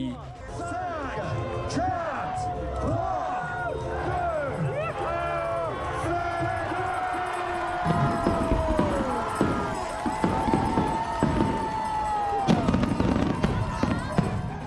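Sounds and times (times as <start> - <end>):
crowd cheering and shouting: 0.0 - 14.6
fireworks exploding over the port of Saint-Pierre: 7.8 - 14.6.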